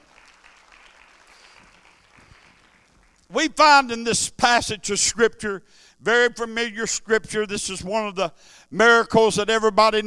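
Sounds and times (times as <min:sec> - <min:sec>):
audience clapping hands: 0:00.0 - 0:03.3
speech: 0:03.3 - 0:10.0.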